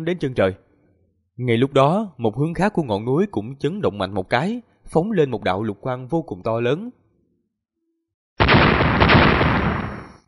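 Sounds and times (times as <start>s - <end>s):
speech: 0.0s - 0.6s, 1.4s - 7.0s
series of loud explosions: 8.4s - 10.2s.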